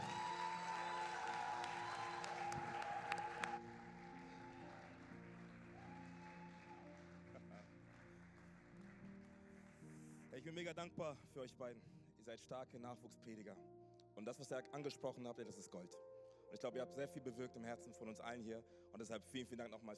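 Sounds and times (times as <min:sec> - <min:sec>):
audience applause: 0:00.0 - 0:10.5
speech: 0:10.4 - 0:19.9.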